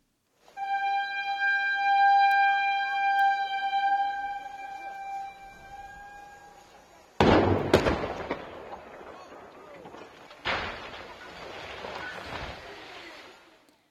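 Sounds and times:
high warning horn: 0.4 - 7.2
rumbling debris: 5.5 - 13.6
explosive blast from cement factory chimney demolition: 7.2 - 13.4
heavy crash of falling chimney: 7.2 - 13.4.

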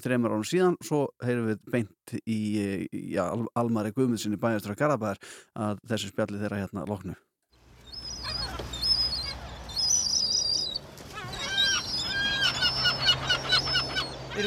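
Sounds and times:
speech: 0.0 - 7.3
gulls calling at a city pond: 7.7 - 14.4.

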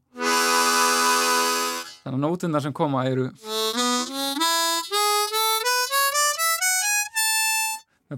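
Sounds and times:
diatonic harmonica drawing a chord: 0.1 - 2.1, 3.4 - 7.9
speech: 2.0 - 3.5.

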